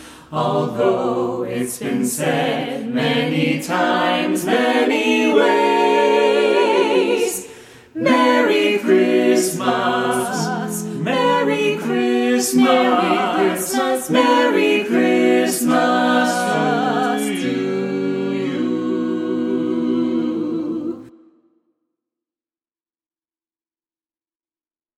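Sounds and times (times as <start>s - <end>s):
carolers singing a Christmas song: 0.0s - 21.1s.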